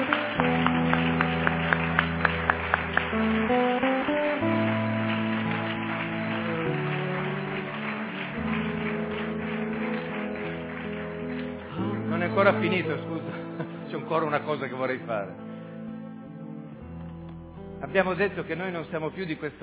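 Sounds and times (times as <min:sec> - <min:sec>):
audience applause: 0:00.0 - 0:14.8
sustained keyboard or organ chords: 0:00.0 - 0:19.6
speech: 0:12.4 - 0:13.3, 0:14.1 - 0:15.5, 0:17.9 - 0:19.6.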